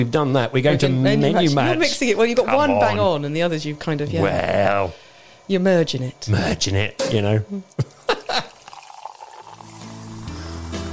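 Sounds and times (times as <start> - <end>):
speech: 0.0 - 7.9
soft fizzy hiss of sparkling wine: 6.4 - 10.9
sparkling wine pouring into a glass: 8.0 - 10.9.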